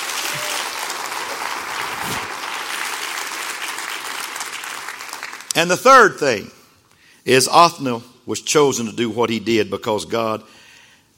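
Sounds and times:
crowd clapping: 0.0 - 5.6
speech: 5.6 - 6.6, 7.2 - 10.6.

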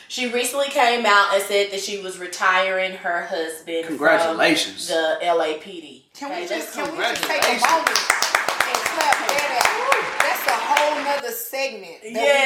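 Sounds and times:
speech: 0.1 - 8.2, 10.9 - 12.4
audience clapping: 6.7 - 11.2.

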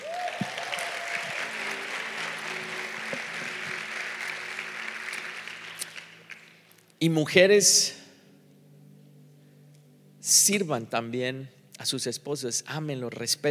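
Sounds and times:
audience applause: 0.0 - 6.8
speech: 7.0 - 8.0, 10.4 - 13.4.

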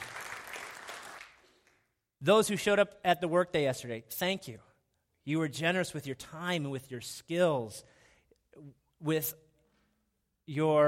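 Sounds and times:
crowd applause: 0.0 - 1.4
speech: 2.2 - 8.0, 8.6 - 9.4, 10.5 - 10.8.

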